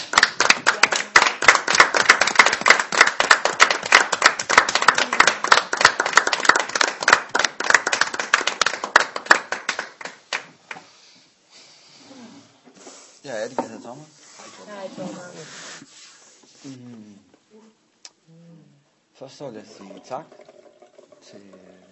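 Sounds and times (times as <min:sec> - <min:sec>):
audience applause at a speaker meeting: 0:00.0 - 0:10.5
speech: 0:13.3 - 0:14.2, 0:14.8 - 0:15.8, 0:16.6 - 0:17.0, 0:19.2 - 0:20.4, 0:21.2 - 0:21.9.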